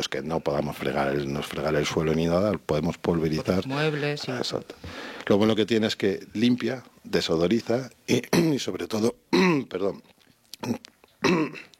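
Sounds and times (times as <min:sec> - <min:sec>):
speech: 0:00.0 - 0:11.7
person clearing throat due to allergy: 0:08.1 - 0:08.6, 0:09.3 - 0:09.7, 0:10.6 - 0:11.7.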